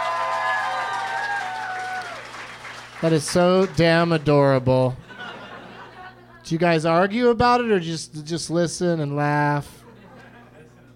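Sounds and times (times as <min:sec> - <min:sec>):
live audience whooping and cheering: 0:00.0 - 0:02.9
live audience applause: 0:00.0 - 0:04.3
speech: 0:03.0 - 0:05.0, 0:06.5 - 0:09.8
laughter: 0:05.0 - 0:06.4, 0:09.8 - 0:10.9.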